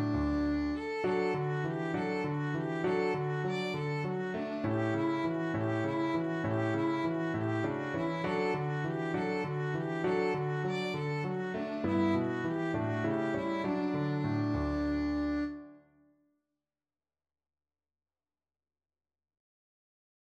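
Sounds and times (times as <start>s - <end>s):
violin: 0.0s - 15.8s.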